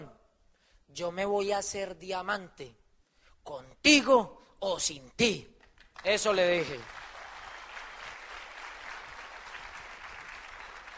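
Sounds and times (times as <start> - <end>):
speech: 0.9 - 2.8, 3.4 - 7.0
audience applause: 6.2 - 10.9.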